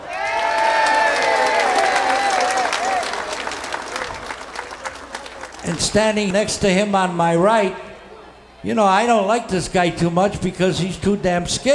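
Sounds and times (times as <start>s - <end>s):
audience applause: 0.0s - 6.0s
speech: 5.7s - 7.8s, 8.6s - 11.7s.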